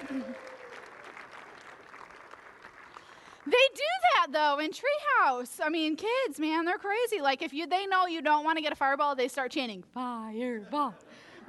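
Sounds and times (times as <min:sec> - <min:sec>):
audience applause for volunteers: 0:00.0 - 0:03.5
speech: 0:03.4 - 0:11.4.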